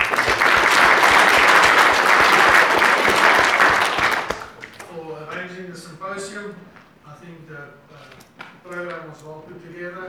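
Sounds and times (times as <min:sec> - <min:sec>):
audience applause: 0:00.0 - 0:05.0.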